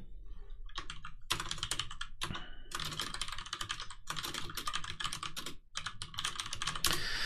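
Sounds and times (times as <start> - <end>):
typing on a computer keyboard: 0.7 - 7.1.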